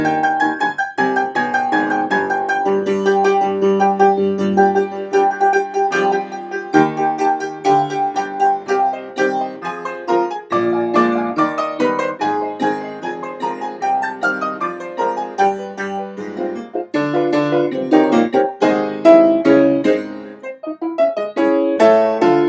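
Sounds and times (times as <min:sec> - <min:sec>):
piano improvisation in C minor: 0:00.0 - 0:22.4.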